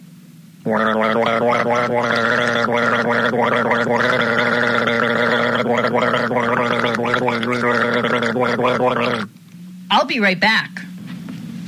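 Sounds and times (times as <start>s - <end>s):
speech: 0.6s - 10.8s
person gulping a drink: 0.7s - 9.3s.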